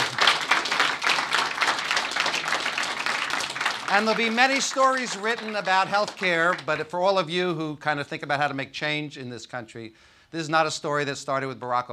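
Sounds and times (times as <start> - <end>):
audience applause: 0.0 - 6.9
speech: 3.9 - 11.9.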